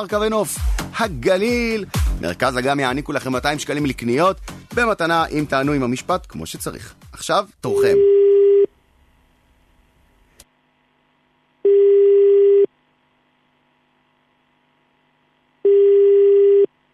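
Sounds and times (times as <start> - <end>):
speech: 0.0 - 8.2
telephone ringback tone on a call: 7.8 - 8.7, 11.6 - 12.7, 15.6 - 16.7.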